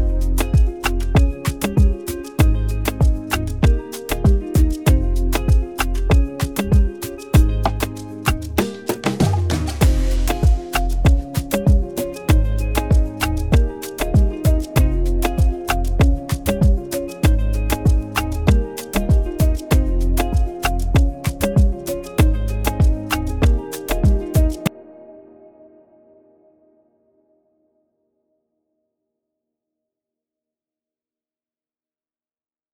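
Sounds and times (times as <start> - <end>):
music beat: 0.0 - 24.8.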